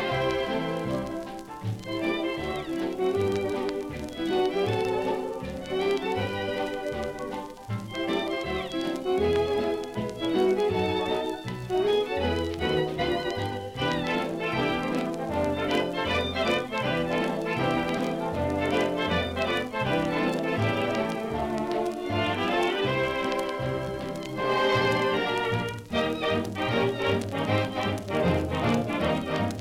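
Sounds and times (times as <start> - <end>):
1932 jazz orchestra instrumental: 0.0 - 29.5.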